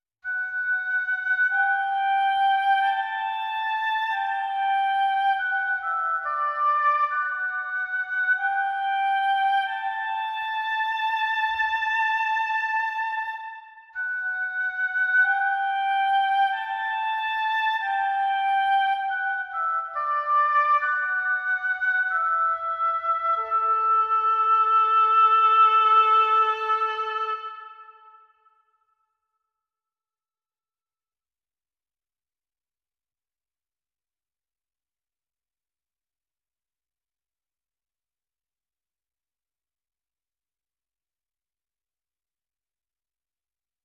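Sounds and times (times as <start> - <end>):
woodwind and brass mix: 0.2 - 28.5.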